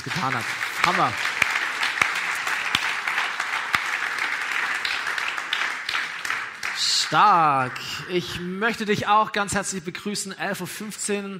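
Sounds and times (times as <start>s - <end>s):
speech: 0.0s - 1.4s, 7.1s - 11.3s
audience applause: 0.0s - 8.2s.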